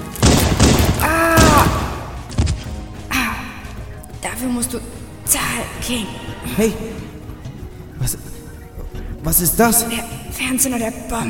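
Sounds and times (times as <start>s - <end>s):
gunshots in a German crime radio drama: 0.0s - 2.7s
speech: 4.4s - 7.2s, 8.0s - 8.4s, 9.2s - 11.2s.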